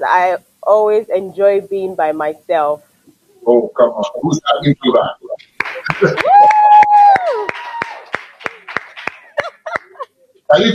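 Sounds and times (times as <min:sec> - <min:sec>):
speech: 0:00.0 - 0:05.2, 0:05.9 - 0:06.6
laughter: 0:04.2 - 0:06.7, 0:08.4 - 0:10.7
people clapping: 0:04.5 - 0:10.0.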